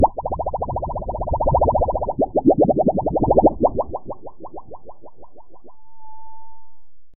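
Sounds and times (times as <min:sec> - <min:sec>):
gigantic bubble expanding and popping: 0:00.0 - 0:05.7.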